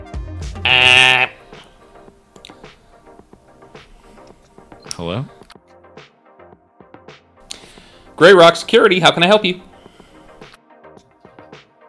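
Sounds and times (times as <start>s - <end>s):
electric door buzzer: 0.6s - 1.4s
speech: 5.0s - 5.4s, 8.2s - 9.7s.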